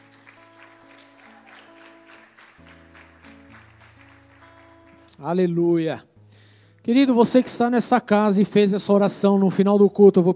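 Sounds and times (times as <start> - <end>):
audience clapping: 0.0 - 5.2
speech: 5.2 - 6.1, 6.9 - 10.3.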